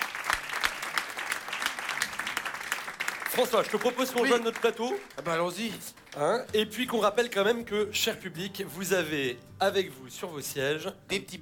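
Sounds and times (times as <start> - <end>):
audience clapping at a live stage show: 0.0 - 7.4
speech: 3.3 - 11.4.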